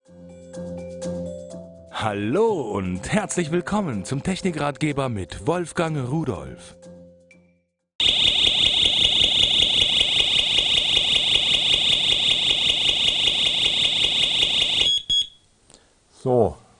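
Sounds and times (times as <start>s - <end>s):
speech: 2.0s - 6.8s, 16.2s - 16.6s
home alarm system siren blaring: 8.0s - 15.3s.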